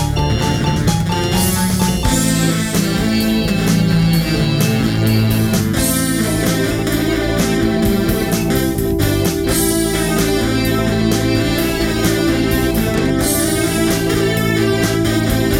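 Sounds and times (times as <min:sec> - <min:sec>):
instrumental piano playing: 0:00.0 - 0:15.5.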